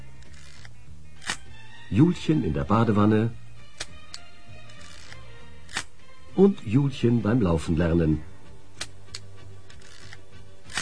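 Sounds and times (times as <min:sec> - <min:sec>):
Alpha camera shutter clicking: 0:00.2 - 0:01.5, 0:03.7 - 0:05.9, 0:08.8 - 0:10.7
speech: 0:01.9 - 0:03.4, 0:06.4 - 0:08.3.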